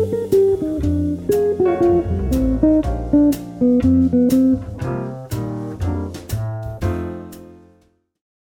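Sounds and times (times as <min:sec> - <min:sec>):
jazz guitar lick: 0:00.0 - 0:06.6.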